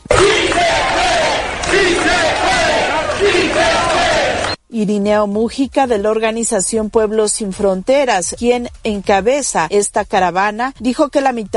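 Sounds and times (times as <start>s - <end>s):
protest crowd shouting support: 0.0s - 4.6s
speech: 4.8s - 11.5s.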